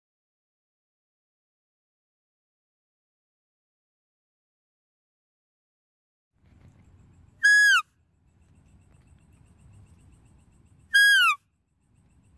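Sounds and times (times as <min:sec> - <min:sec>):
deer whistled calls: 0:07.4 - 0:07.9, 0:10.9 - 0:11.4.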